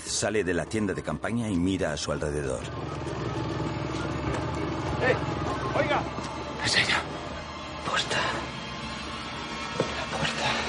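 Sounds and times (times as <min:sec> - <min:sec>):
speech: 0:00.2 - 0:03.2, 0:05.0 - 0:07.2
vehicle engine running: 0:02.2 - 0:10.6.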